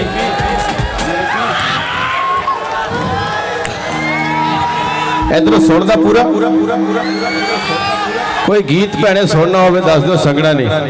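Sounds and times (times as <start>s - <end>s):
crowd cheering and whooping at a live Punjabi song performance: 0.2s - 8.9s
speech: 5.3s - 10.8s.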